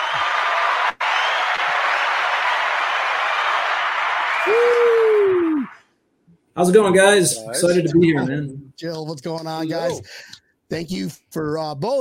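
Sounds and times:
audience applause: 0:00.0 - 0:05.8
speech: 0:06.6 - 0:11.9.

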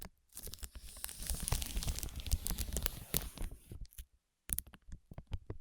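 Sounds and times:
ear massage rubbing and crinkling: 0:00.4 - 0:03.8.

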